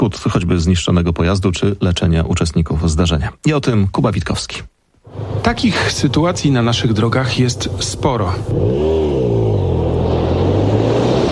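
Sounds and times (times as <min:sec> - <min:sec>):
speech: 0:00.0 - 0:09.6
motorcycle engine revving loudly: 0:05.1 - 0:11.3.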